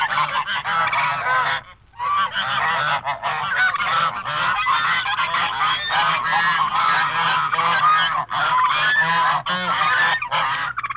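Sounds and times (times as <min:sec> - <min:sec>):
flock of geese and ducks honking and cackling: 0:00.0 - 0:10.9.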